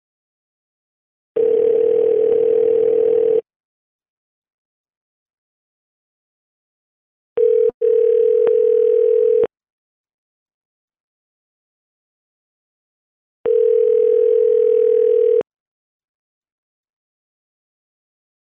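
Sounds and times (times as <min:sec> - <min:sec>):
telephone dial tone while placing a call back: 0:01.4 - 0:03.5, 0:07.4 - 0:09.5, 0:13.5 - 0:15.5.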